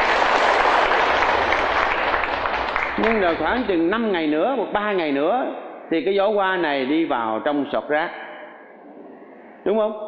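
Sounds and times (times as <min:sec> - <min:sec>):
audience applause at a monk's talk: 0:00.0 - 0:03.8
speech: 0:03.0 - 0:08.2, 0:09.6 - 0:10.0.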